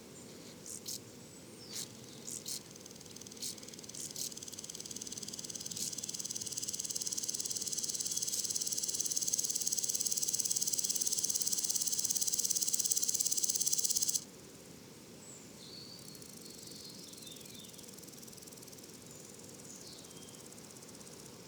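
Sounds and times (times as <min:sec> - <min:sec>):
faint continuous high hiss: 0:00.2 - 0:21.4
woodland grasshopper stridulating: 0:01.8 - 0:14.2.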